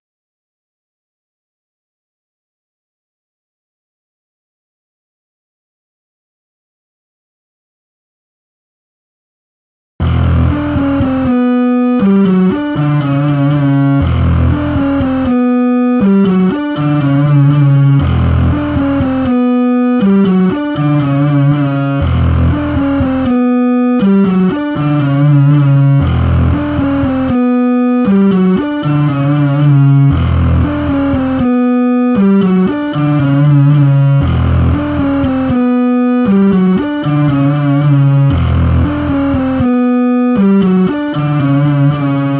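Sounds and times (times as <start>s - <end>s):
bass: 10.0s - 42.3s.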